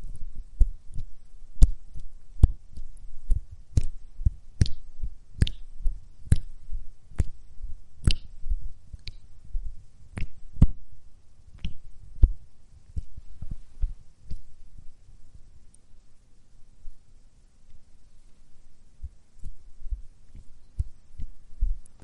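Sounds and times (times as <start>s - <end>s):
slapping pats applying body lotion: 0.6s - 5.7s, 6.3s - 7.4s, 8.0s - 8.4s, 10.1s - 10.8s, 11.6s - 14.5s.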